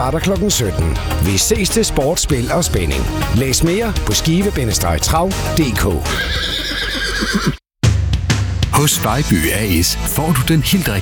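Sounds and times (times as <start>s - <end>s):
speech: 0.0s - 7.6s, 8.8s - 11.0s
horse neighing for a trotting-race advert: 6.0s - 7.6s.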